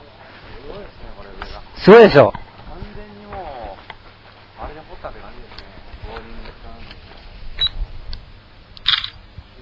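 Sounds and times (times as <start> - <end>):
speech: 1.8 - 2.4
camera electronic beeps in a tunnel: 7.6 - 7.8, 8.8 - 9.2
camera shutter click in a tunnel: 8.8 - 9.2.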